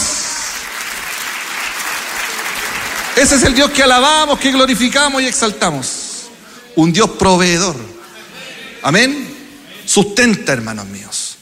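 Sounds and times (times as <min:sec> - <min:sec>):
applause from a church congregation during a worship service: 0:00.0 - 0:05.2
speech: 0:03.2 - 0:06.0, 0:06.8 - 0:07.9, 0:08.8 - 0:09.3, 0:09.9 - 0:11.2.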